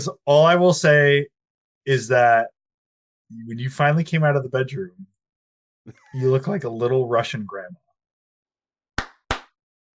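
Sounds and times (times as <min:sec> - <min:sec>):
speech: 0:00.0 - 0:02.5, 0:03.3 - 0:05.1, 0:05.8 - 0:07.8
hand clap used as edit marker: 0:09.0 - 0:09.6.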